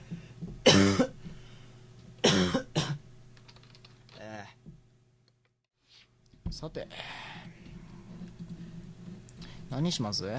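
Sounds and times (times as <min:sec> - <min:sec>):
faint steady hum: 0:00.0 - 0:10.3
person coughing harshly after something went down the windpipe: 0:00.6 - 0:01.2, 0:02.2 - 0:03.0
speech: 0:06.6 - 0:07.3, 0:09.7 - 0:10.3.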